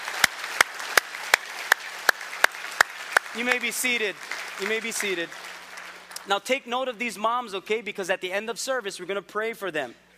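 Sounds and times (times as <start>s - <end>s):
audience clapping in unison: 0.0s - 6.3s
speech: 3.4s - 5.5s, 6.2s - 10.0s.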